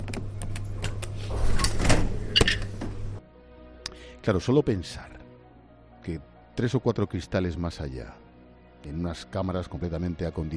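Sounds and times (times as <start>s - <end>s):
laboratory security door opening: 0.7s - 3.2s
speech: 4.2s - 5.2s, 6.0s - 8.2s, 8.8s - 10.5s.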